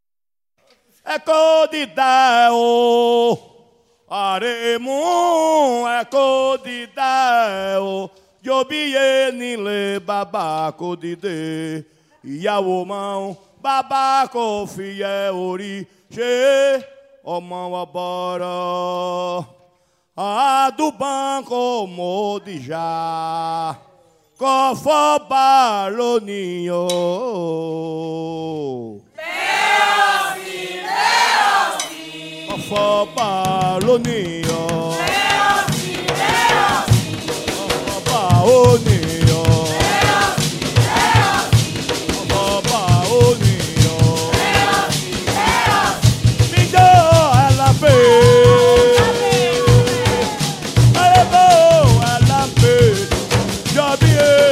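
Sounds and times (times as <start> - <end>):
toada for Xango: 0.8 - 54.5.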